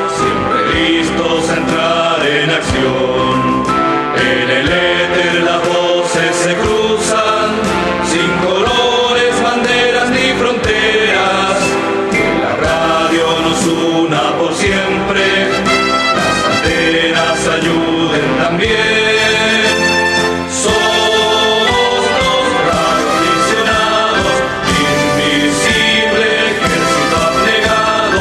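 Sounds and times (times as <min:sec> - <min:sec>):
anthem: 0:00.0 - 0:28.1.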